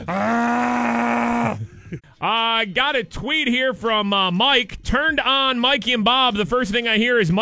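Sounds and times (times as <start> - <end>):
camel grunting: 0.0 - 1.9
speech: 2.0 - 7.3.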